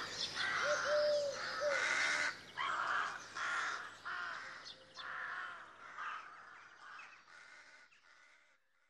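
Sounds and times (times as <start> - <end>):
crows cawing: 0.0 - 8.8
dove cooing: 0.4 - 2.0.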